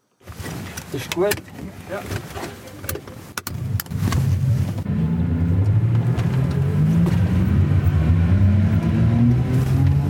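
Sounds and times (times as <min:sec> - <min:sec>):
speech: 0:00.9 - 0:02.9
electric tuk-tuk driving: 0:03.4 - 0:10.0.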